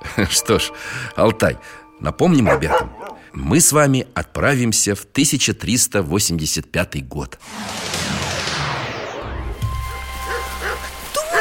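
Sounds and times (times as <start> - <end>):
speech: 0.2 - 8.2
rain: 9.5 - 11.3.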